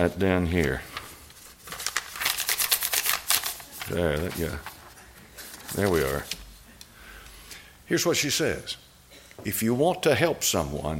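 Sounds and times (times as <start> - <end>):
speech: 0.0 - 0.9, 3.9 - 4.7, 5.7 - 6.4, 7.9 - 8.8, 9.4 - 10.9
piece of paper being pulled apart: 1.5 - 6.5.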